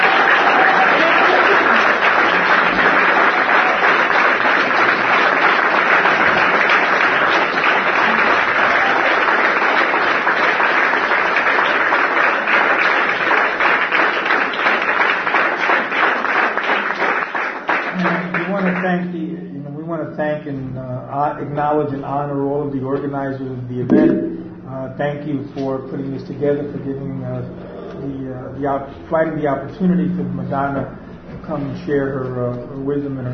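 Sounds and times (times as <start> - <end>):
crowd applauding: 0.0 - 19.1
speech: 21.4 - 24.2, 24.9 - 33.3.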